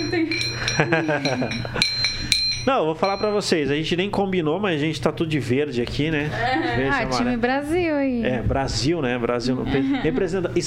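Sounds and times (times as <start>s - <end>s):
medals clinking together: 0.0s - 3.7s
speech: 0.1s - 10.6s.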